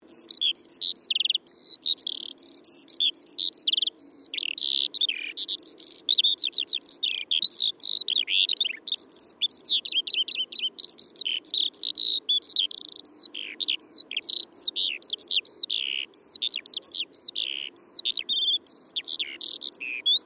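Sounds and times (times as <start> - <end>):
Eurasian skylark song: 0.0 - 20.2.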